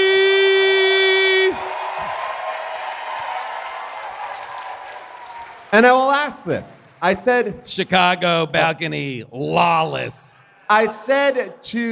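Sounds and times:
live audience cheering and applauding: 0.0s - 7.2s
speech: 5.8s - 11.9s.

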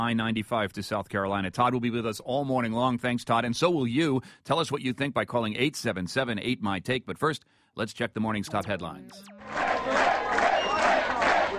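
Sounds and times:
speech: 0.0s - 10.2s
crowd cheering at Mitt Romney's New Hampshire headquarters: 9.2s - 11.5s
applause: 9.4s - 11.5s.

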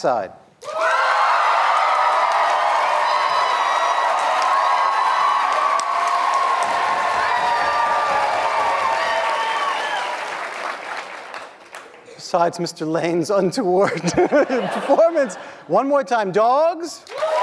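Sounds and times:
speech: 0.0s - 0.4s, 12.3s - 17.1s
crowd whooping and shouting: 0.6s - 10.6s, 17.1s - 17.4s
crowd applauding: 0.6s - 12.2s, 17.1s - 17.4s
laughter: 13.8s - 15.7s.

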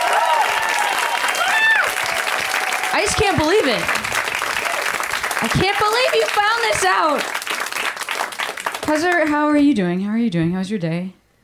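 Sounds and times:
crowd cheering and whooping: 0.0s - 7.2s
crowd applauding: 0.0s - 9.4s
speech: 3.0s - 4.0s, 5.4s - 7.4s, 8.9s - 11.2s.

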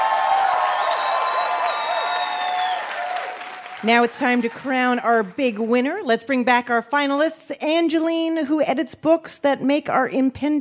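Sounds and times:
audience cheers and whoops: 0.0s - 3.8s
audience applause: 0.0s - 5.7s
speech: 3.8s - 10.5s.

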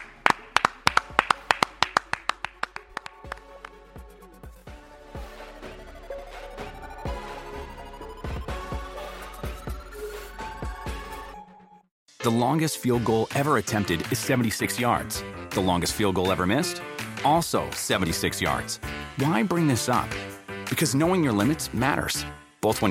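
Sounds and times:
hand claps: 0.0s - 4.0s
bright music with a slowly rising tone: 0.0s - 22.8s
speech: 12.3s - 22.8s.

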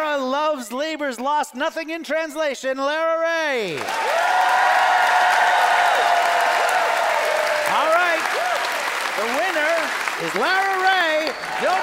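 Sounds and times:
speech: 0.6s - 4.8s, 9.2s - 11.8s
audience applause: 3.8s - 11.8s.

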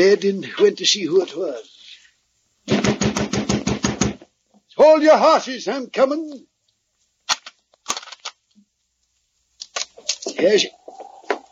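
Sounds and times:
speech: 0.0s - 1.7s, 4.8s - 6.5s, 10.4s - 10.8s
someone pounding on the door: 2.7s - 4.3s.

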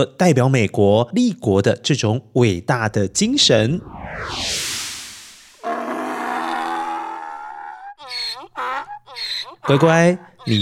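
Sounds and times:
speech: 0.0s - 4.6s, 9.6s - 10.6s
donkey braying: 5.6s - 10.6s.

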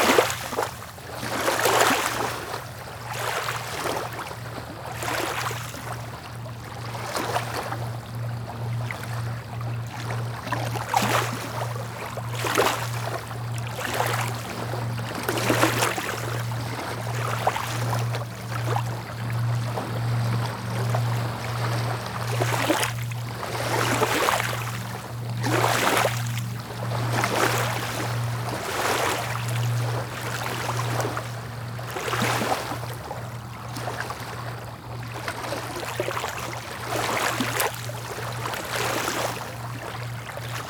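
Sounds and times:
small waves splashing gently: 0.0s - 40.6s
steady low hum: 2.3s - 40.6s.

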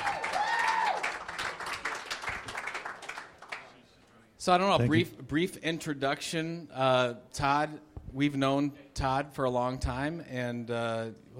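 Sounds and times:
audience applause: 0.0s - 3.8s
speech: 4.4s - 11.3s.

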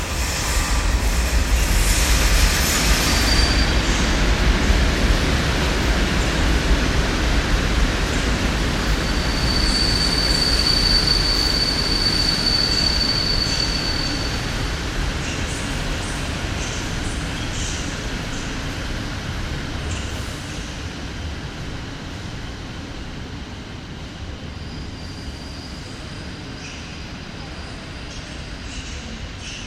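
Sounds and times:
train rumble at Wroclaw train station platform: 0.0s - 29.6s
thin high squeal of train wheels: 2.7s - 4.0s, 9.0s - 14.4s.

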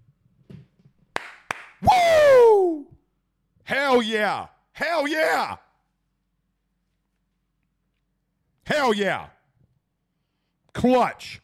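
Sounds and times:
hand claps: 1.1s - 1.8s
speech: 3.9s - 5.6s, 8.7s - 9.4s, 10.8s - 11.4s.

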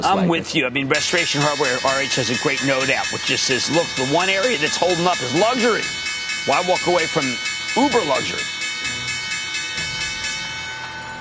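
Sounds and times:
speech: 0.1s - 8.6s
NYSE stock exchange bell ringing: 1.0s - 11.1s.

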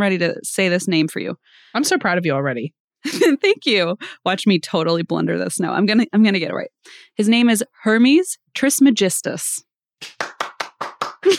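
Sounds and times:
speech: 0.0s - 10.4s
hand claps: 10.0s - 11.3s.

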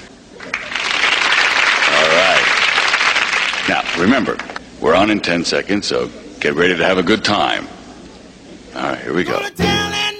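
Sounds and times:
studio audience applause: 0.4s - 4.1s
speech: 3.7s - 7.7s, 9.1s - 9.8s.

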